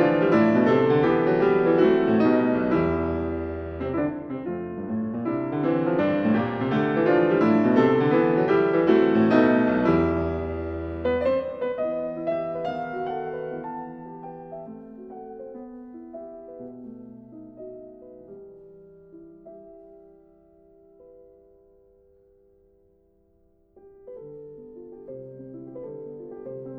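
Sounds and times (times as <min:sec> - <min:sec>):
arabesque in a minor key, somewhat slower: 0:00.0 - 0:20.8.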